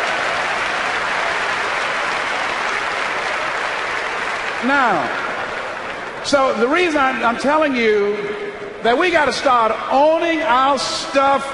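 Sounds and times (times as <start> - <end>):
audience applause: 0.0 - 6.4
speech: 4.6 - 5.3, 6.2 - 11.5.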